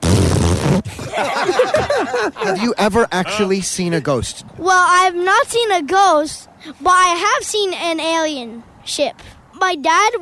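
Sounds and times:
child blowing a loud buzzy raspberry imitating a fart: 0:00.0 - 0:01.0
laughter: 0:00.9 - 0:03.6
speech: 0:02.2 - 0:10.2.

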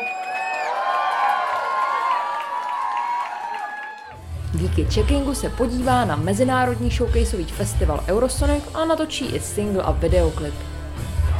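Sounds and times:
audience applause and cheering: 0:00.0 - 0:04.5
speech: 0:04.6 - 0:10.7.

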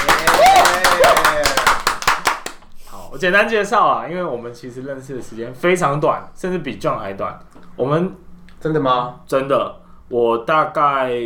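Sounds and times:
small group applause welcoming a guest: 0:00.0 - 0:02.7
voiced whoops: 0:00.1 - 0:01.8
speech: 0:03.2 - 0:11.2.

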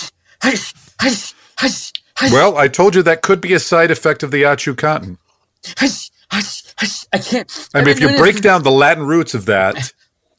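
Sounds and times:
person sneezing: 0:00.0 - 0:02.4, 0:05.6 - 0:08.3
speech: 0:00.4 - 0:10.0.

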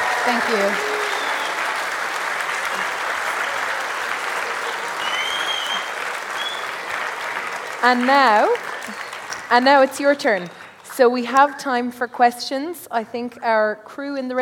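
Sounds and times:
audience round of applause: 0:00.0 - 0:11.3
speech: 0:00.2 - 0:00.9, 0:07.8 - 0:14.3.

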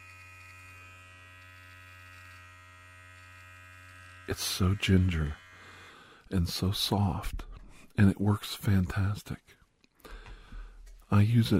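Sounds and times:
electric shaver buzzing while shaving body hair: 0:00.0 - 0:07.1
speech: 0:04.3 - 0:05.4, 0:06.3 - 0:10.2, 0:11.1 - 0:11.5.

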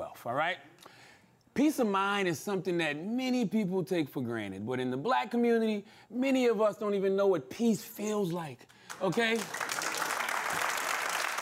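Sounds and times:
speech: 0:00.2 - 0:00.8, 0:01.6 - 0:09.6
audience clapping: 0:08.8 - 0:11.3.

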